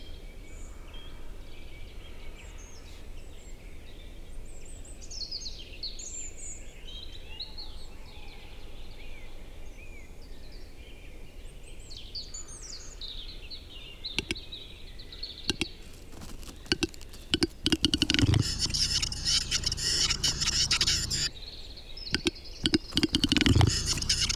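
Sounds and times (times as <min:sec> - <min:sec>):
forest birdsong high chirping calls: 0:13.1 - 0:24.3
displaying capercaillie cock clicking and scraping: 0:14.2 - 0:14.4, 0:15.5 - 0:21.3, 0:22.2 - 0:24.3.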